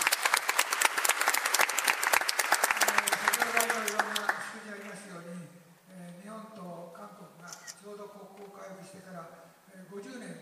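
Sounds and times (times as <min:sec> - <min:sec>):
audience applause: 0:00.0 - 0:04.7.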